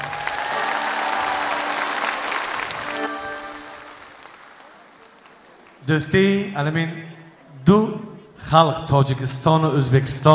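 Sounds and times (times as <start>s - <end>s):
audience applause for a guest artist at a Tajik–Uzbek friendship concert: 0.0s - 5.9s
speech: 5.9s - 7.1s, 7.7s - 10.3s.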